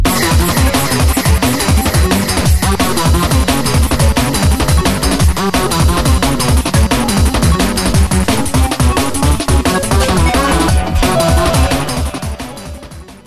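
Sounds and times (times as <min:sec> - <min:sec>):
remix music: 0:00.1 - 0:13.2.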